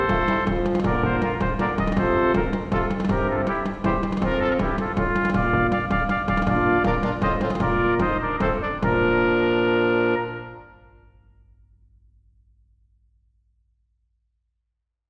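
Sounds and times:
brass quintet playing a minuet: 0.0 - 11.1
drums: 0.0 - 12.0.

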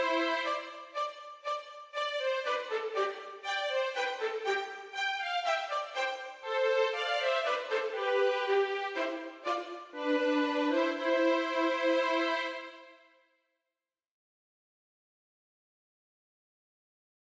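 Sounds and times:
minuet for violin duet: 0.0 - 12.9.

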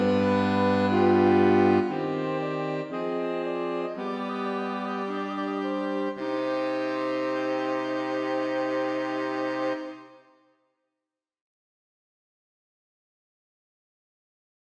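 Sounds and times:
saxophone quartet playing an air: 0.0 - 10.3.

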